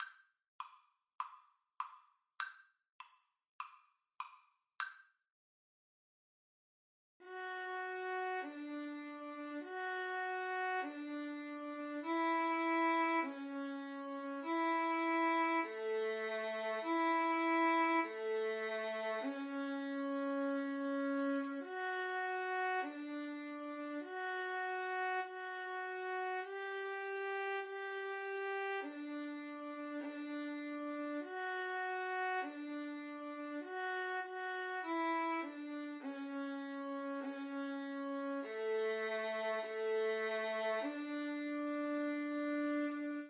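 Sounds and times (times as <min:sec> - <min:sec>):
violins: 0:07.2 - 0:43.2.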